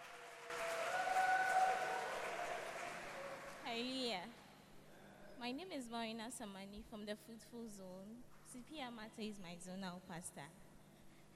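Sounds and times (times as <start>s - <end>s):
audience clapping: 0.0s - 3.8s
speech: 3.8s - 4.4s, 5.4s - 10.7s.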